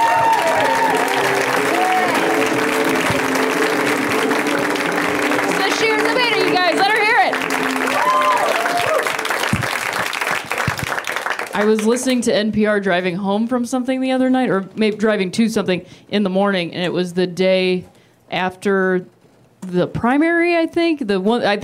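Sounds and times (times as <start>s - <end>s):
audience cheers and voices: 0.0s - 9.2s
audience applause welcoming a comedian to the stage: 0.0s - 12.2s
speech: 11.6s - 21.6s.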